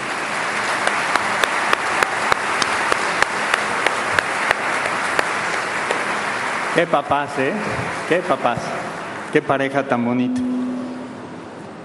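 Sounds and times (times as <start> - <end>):
audience applause: 0.0 - 9.3
speech: 6.8 - 10.5.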